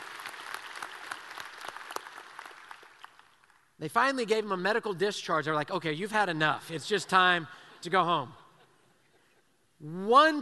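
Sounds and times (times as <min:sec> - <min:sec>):
audience applauding: 0:00.0 - 0:03.6
speech: 0:03.8 - 0:08.4, 0:09.8 - 0:10.4.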